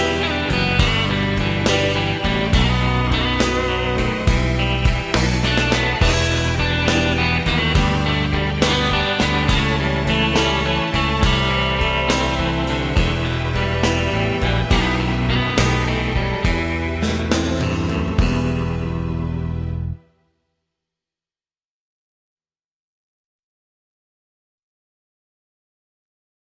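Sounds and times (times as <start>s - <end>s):
backing track: 0.0s - 20.0s.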